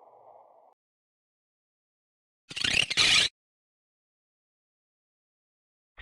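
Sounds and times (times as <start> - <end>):
sci-fi mechanical sounds: 2.5 - 3.3.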